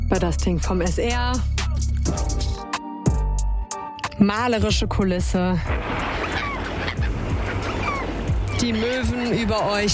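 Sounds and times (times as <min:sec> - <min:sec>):
speech: 0:00.1 - 0:02.5, 0:04.2 - 0:06.5, 0:08.6 - 0:09.9
gentle rushing of sea waves: 0:05.5 - 0:09.9.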